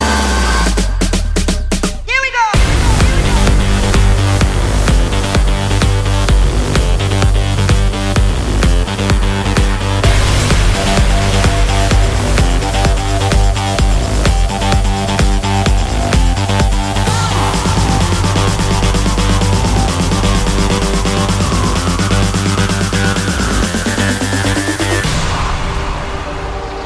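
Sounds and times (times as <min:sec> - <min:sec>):
hard rock music: 0:00.0 - 0:26.8.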